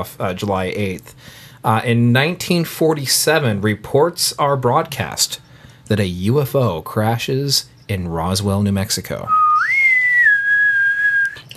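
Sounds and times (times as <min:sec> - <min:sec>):
speech: 0:00.0 - 0:09.8
person whistling: 0:09.3 - 0:11.5.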